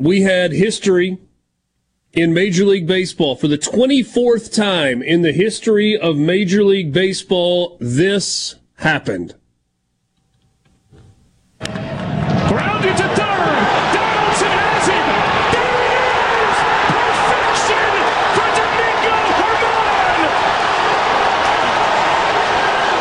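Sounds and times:
speech: 0.0s - 1.3s, 2.1s - 9.4s
baseball stadium crowd cheering in Oakland: 11.6s - 23.0s.

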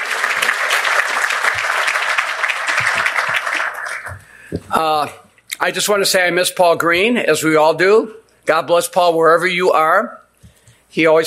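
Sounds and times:
audience applause: 0.0s - 4.5s
speech: 4.8s - 10.2s, 10.9s - 11.2s.

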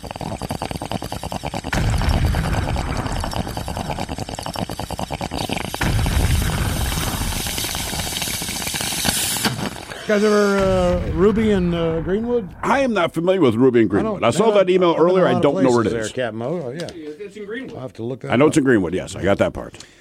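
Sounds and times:
speech: 0.0s - 0.4s, 10.1s - 19.9s
bong rip bubbling hiss: 0.0s - 14.5s
rapid pulsing beat drop: 1.4s - 9.4s, 10.5s - 13.8s
explosion effects: 1.7s - 4.4s, 5.8s - 8.5s, 10.4s - 13.6s.

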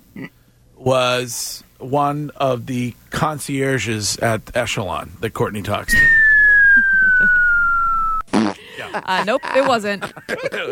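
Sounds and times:
speech: 0.2s - 6.2s, 8.8s - 10.7s
whistling tone sliding lower: 5.9s - 8.3s
raspy fart noise: 8.2s - 8.6s
laughter: 8.7s - 10.7s.

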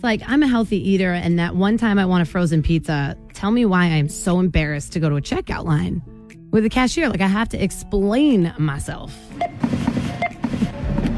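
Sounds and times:
speech: 0.0s - 9.8s
electronic beeps: 9.3s - 11.1s.

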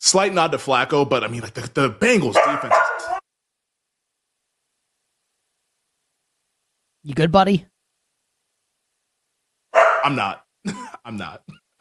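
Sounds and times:
speech: 0.1s - 3.2s, 7.0s - 7.7s, 9.8s - 11.7s
dog barking: 2.3s - 3.2s, 9.8s - 10.3s.

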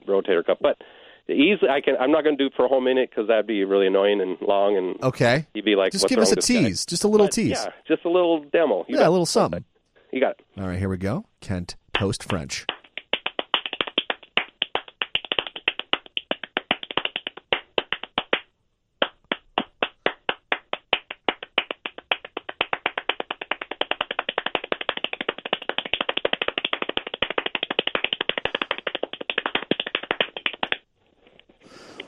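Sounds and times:
speech: 0.1s - 12.8s
people clapping: 5.0s - 7.7s, 11.5s - 30.8s.

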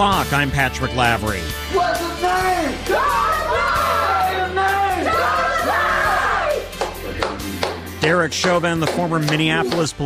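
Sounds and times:
speech: 0.0s - 3.3s, 8.0s - 10.0s
George Floyd's family in Houston cheering and chanting after the verdict: 1.7s - 7.4s, 8.7s - 10.0s.

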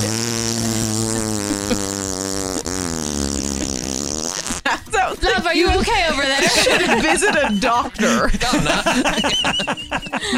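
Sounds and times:
vocal imitation of a fart: 0.0s - 5.0s
laughter: 4.6s - 10.3s
speech: 5.4s - 10.3s.

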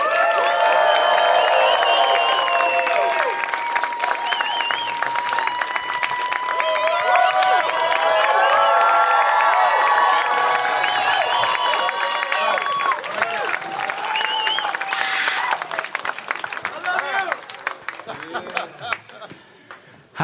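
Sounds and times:
audience whooping: 0.0s - 17.6s
audience clapping as a Latin alternative band comes on stage: 0.0s - 20.2s
audience whistling: 0.4s - 9.2s, 10.4s - 15.4s, 16.0s - 16.8s
laughter: 17.7s - 19.6s.

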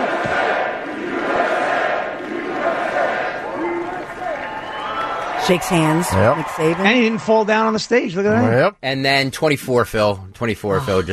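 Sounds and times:
individual voices shouting: 0.0s - 7.6s
large crowd roaring and cheering: 0.0s - 8.5s
steady applause: 3.3s - 7.6s
speech: 5.5s - 11.1s.

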